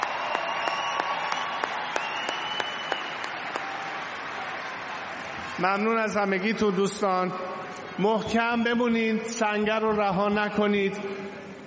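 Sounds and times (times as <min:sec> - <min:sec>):
audience applause for performers: 0:00.0 - 0:06.0
speech: 0:05.6 - 0:11.2.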